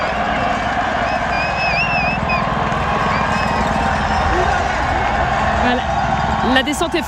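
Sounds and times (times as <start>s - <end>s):
roaring crowd of spectators at the top of a steep race descent: 0.0s - 7.0s
whistle-like tones: 1.0s - 4.6s
speech: 6.6s - 7.0s.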